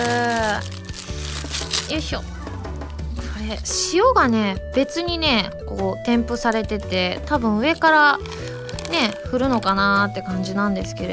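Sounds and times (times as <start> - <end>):
snack package being opened with crinkly plastic rustling: 0.0 - 2.2, 7.6 - 9.9
speech: 1.9 - 2.4, 3.4 - 11.1.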